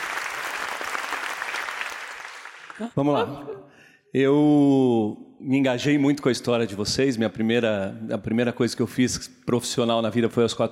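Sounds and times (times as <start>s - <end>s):
audience applause: 0.0s - 3.0s
speech: 2.8s - 10.7s.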